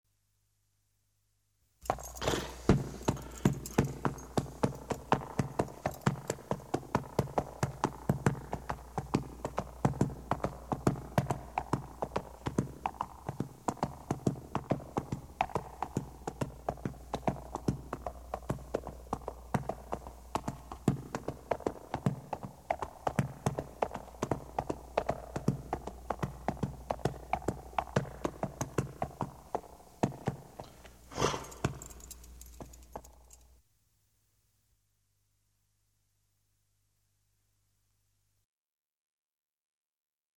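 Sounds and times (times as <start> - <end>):
horses: 1.8 - 33.5.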